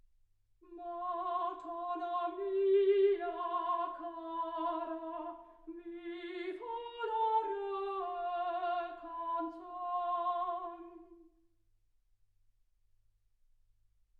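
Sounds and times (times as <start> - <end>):
soprano singing: 0.6 - 11.3.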